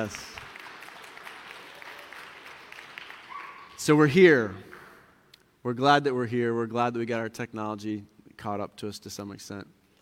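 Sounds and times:
speech: 0.0 - 0.3, 3.8 - 4.7, 5.6 - 9.8
sparse light golf clap applause: 0.0 - 3.8.

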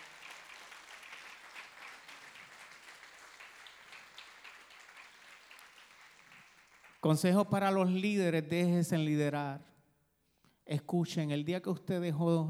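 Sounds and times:
audience applauding: 0.0 - 7.3
speech: 7.0 - 9.7, 10.7 - 12.4.

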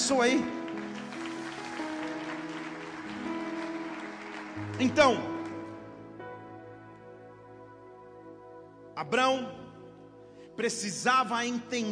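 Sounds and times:
audience clapping: 0.0 - 6.2
sustained keyboard chords: 0.0 - 11.8
speech: 0.1 - 0.6, 4.8 - 5.3, 9.0 - 9.6, 10.6 - 11.8.

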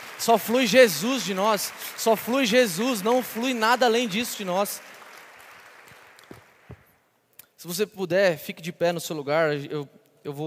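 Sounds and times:
audience applause: 0.0 - 6.8
speech: 0.2 - 5.0, 7.6 - 10.4.

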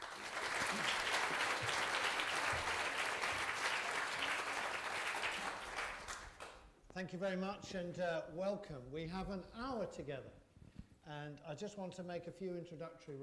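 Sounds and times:
audience applause at an evening Cambridge Science Festival talk: 0.0 - 6.6
speech: 7.0 - 10.4, 11.1 - 13.2.

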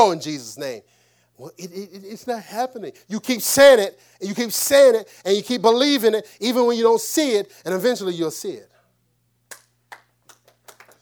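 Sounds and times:
speech: 0.0 - 8.7
hand claps: 9.5 - 10.9.

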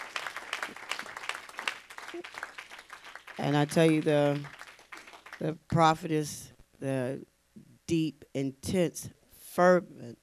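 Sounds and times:
church congregation clapping their hands in praise: 0.0 - 5.6
speech: 2.2 - 2.4, 3.4 - 4.6, 5.4 - 7.3, 7.9 - 10.2.

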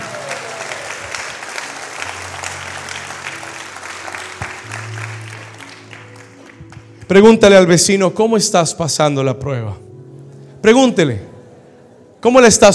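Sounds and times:
audience applauding: 0.0 - 7.1
speech: 7.1 - 9.9, 10.6 - 11.3, 12.2 - 12.7.

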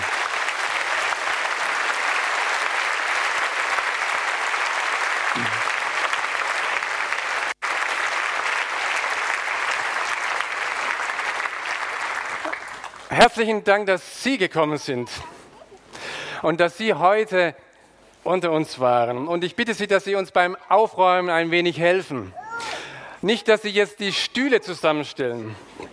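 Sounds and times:
audience applauding: 0.0 - 13.1
speech: 13.2 - 15.4, 16.4 - 17.6, 18.2 - 22.4, 23.2 - 25.8.

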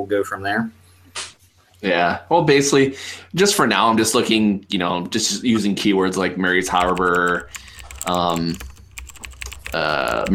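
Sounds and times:
speech: 0.0 - 0.8, 1.8 - 8.7, 9.7 - 10.3
keys clicking on a computer keyboard as a search is typed: 6.6 - 10.3.

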